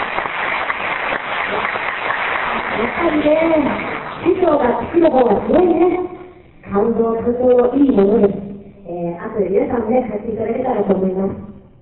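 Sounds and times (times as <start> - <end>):
audience applause at a talk: 0.0 - 4.2
speech: 2.8 - 6.1, 6.7 - 8.4, 9.3 - 11.8.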